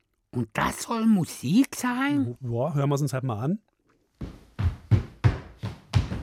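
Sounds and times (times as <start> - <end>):
speech: 0.4 - 3.6
stomping feet: 4.2 - 6.2.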